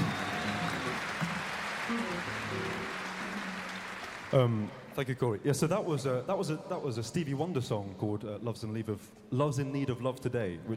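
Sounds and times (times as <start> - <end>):
audience applause: 0.0 - 5.0
speech: 4.3 - 10.7.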